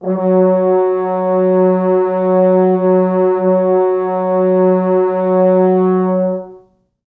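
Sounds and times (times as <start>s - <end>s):
four French horns: 0.0s - 6.8s.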